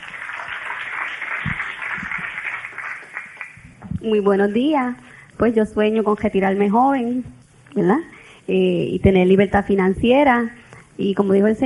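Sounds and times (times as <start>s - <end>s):
audience applause: 0.0s - 3.6s
speech: 4.0s - 11.6s.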